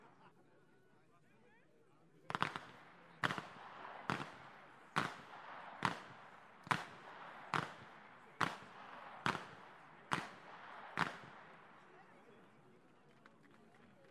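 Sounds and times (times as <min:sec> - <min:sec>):
whip cracking in Flachgau: 0:02.3 - 0:11.8.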